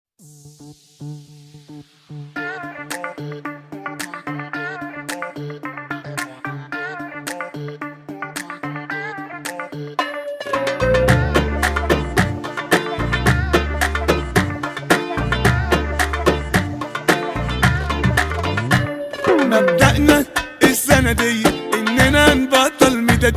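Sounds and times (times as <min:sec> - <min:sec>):
oriental music: 0:10.0 - 0:23.3.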